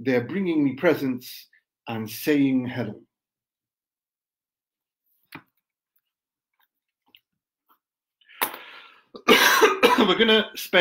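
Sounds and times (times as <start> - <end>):
speech: 0.0 - 3.1, 9.2 - 10.7
person coughing from almond dust: 9.2 - 10.3.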